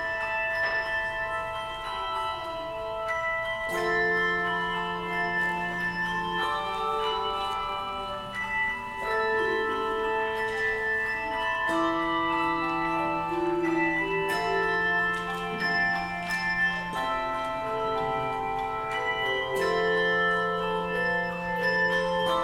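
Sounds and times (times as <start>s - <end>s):
handbells ostinato in A minor: 0.0s - 22.4s.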